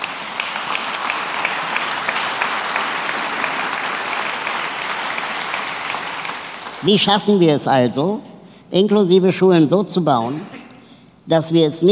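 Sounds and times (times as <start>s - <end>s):
audience applause: 0.0s - 6.9s
speech: 6.8s - 10.5s, 11.3s - 11.9s.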